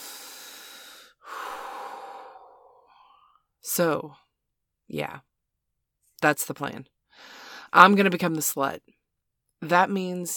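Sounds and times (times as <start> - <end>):
deep breath in and long soft exhale: 0.0 - 3.4
speech: 3.7 - 4.2, 4.9 - 5.3, 6.2 - 9.0, 9.6 - 10.3.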